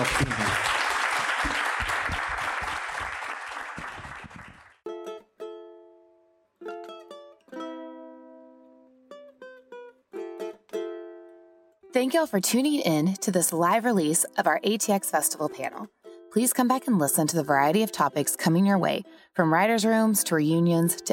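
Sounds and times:
audience applause: 0.0 - 4.8
speech: 12.0 - 21.1.

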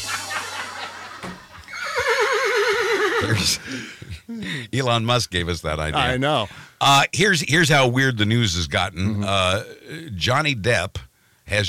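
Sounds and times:
laughter: 0.0 - 1.8, 3.0 - 4.4
horse neighing sound effect: 1.6 - 3.6
speech: 3.3 - 11.6.

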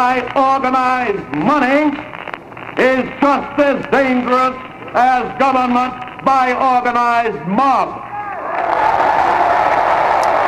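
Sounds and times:
speech: 0.0 - 2.2, 2.8 - 8.0
audience applause and cheering: 8.1 - 10.4.

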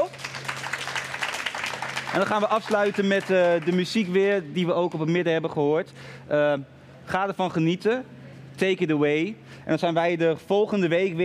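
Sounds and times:
audience applause: 0.0 - 4.2
speech: 2.1 - 11.2.

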